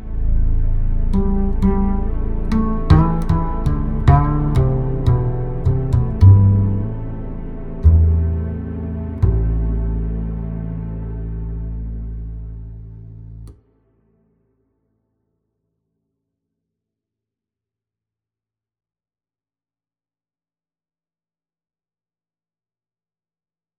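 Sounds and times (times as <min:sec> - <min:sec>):
acoustic music: 0:00.0 - 0:13.5.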